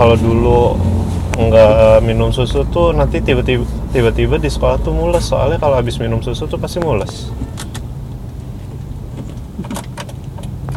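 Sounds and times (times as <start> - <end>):
car driving by: 0.0 - 6.6
speech: 0.0 - 7.6.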